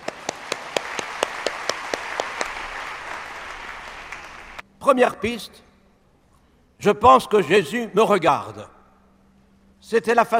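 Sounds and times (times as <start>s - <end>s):
audience applause: 0.0s - 4.6s
speech: 4.8s - 5.7s, 6.8s - 8.8s, 9.8s - 10.3s.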